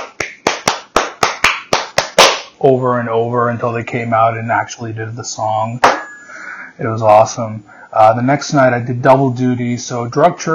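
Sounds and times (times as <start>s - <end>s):
rhythmic hand claps: 0.0s - 2.6s
speech: 2.6s - 6.0s, 6.8s - 10.5s.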